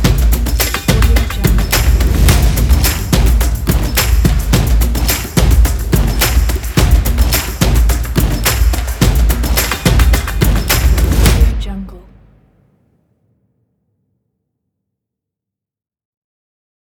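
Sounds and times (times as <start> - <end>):
drums: 0.0 - 11.7.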